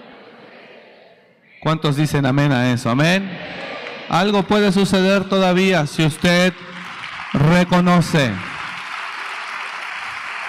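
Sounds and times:
speech: 1.6 - 3.5, 4.1 - 6.7, 7.3 - 8.5
audience applause: 6.0 - 10.4.

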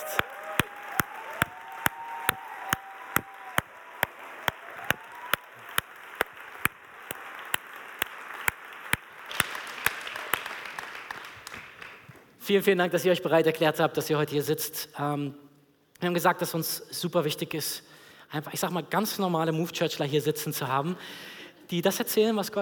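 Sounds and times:
crowd noise: 0.0 - 10.3
audience clapping in rhythmic unison: 0.0 - 12.3
speech: 12.5 - 15.4, 16.0 - 22.6.

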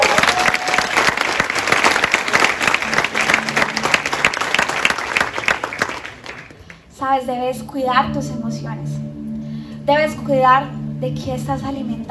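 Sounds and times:
audience applause: 0.0 - 6.8
speech: 7.2 - 8.9, 9.9 - 12.0.

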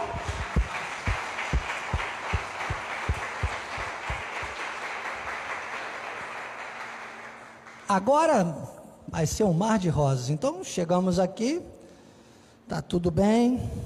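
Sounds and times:
soft rhythmic low thumps: 0.0 - 4.6
audience applauding: 0.0 - 7.9
speech: 7.9 - 11.8, 12.7 - 13.8.

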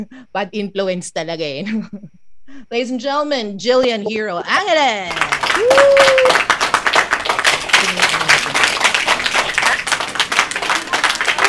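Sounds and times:
speech: 0.0 - 6.5
clapping: 5.1 - 11.4.

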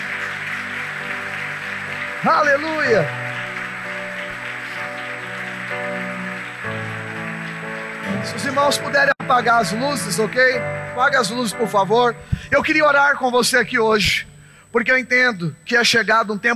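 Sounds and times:
audience applauding loudly: 0.0 - 10.6
speech: 2.2 - 3.2, 8.4 - 16.5.

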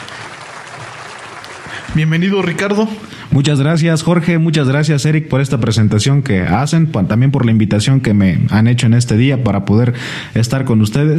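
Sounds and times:
audience applause: 0.0 - 2.7
speech: 1.9 - 11.1.

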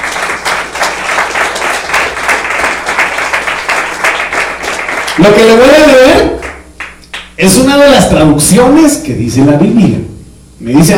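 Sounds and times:
audience clapping in rhythm: 0.0 - 7.7
speech: 5.2 - 6.0, 7.4 - 10.9.

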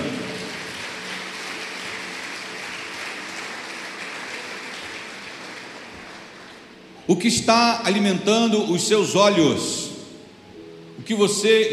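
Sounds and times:
audience applause: 0.0 - 6.7
speech: 7.1 - 9.8, 11.1 - 11.7.

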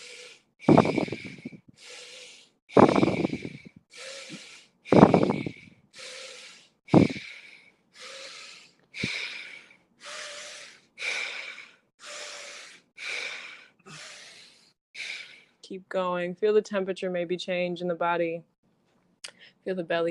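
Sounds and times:
steady breathing in and out through the nose: 0.0 - 15.6
speech: 15.7 - 18.5, 19.6 - 20.0.

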